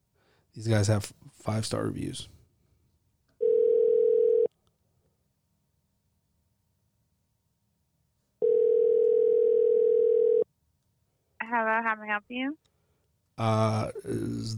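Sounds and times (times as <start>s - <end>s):
speech: 0.6s - 2.4s, 12.2s - 12.7s, 13.4s - 14.5s
telephone ringback tone: 3.4s - 4.5s, 8.4s - 10.4s.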